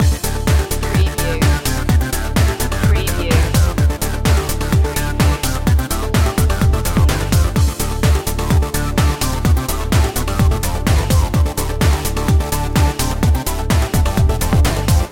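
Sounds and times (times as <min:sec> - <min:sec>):
music loop: 0:00.0 - 0:15.0.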